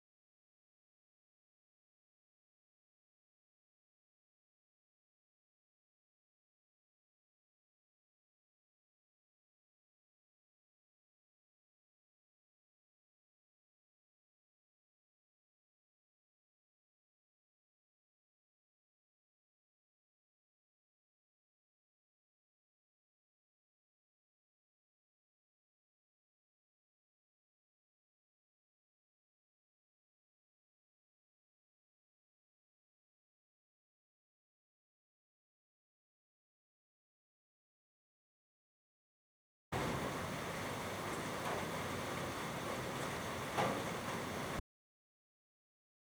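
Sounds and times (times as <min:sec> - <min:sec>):
background noise: 0:39.8 - 0:44.6.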